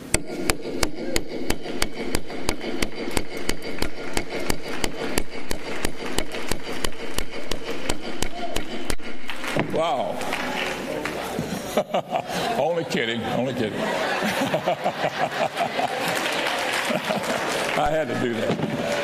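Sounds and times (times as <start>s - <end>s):
hammering a nail into a board: 0.1s - 9.8s
laughter: 9.7s - 19.0s
speech: 14.8s - 15.8s, 17.8s - 19.0s.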